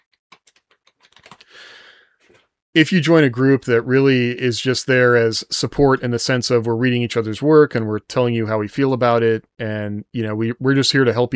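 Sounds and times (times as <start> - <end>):
typing on a computer keyboard: 0.0 - 1.4
speech: 2.8 - 11.3.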